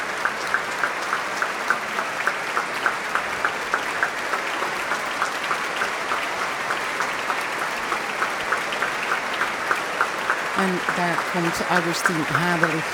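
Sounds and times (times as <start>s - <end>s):
audience clapping in unison for an encore: 0.0s - 12.9s
speech: 10.7s - 12.9s.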